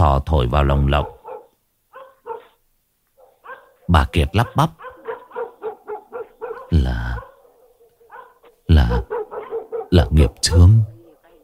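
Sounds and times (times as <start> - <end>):
speech: 0.2 - 1.2, 3.9 - 4.8, 6.7 - 7.2, 8.7 - 9.2, 9.9 - 10.9
dog barking outside: 0.9 - 2.6, 3.2 - 11.4.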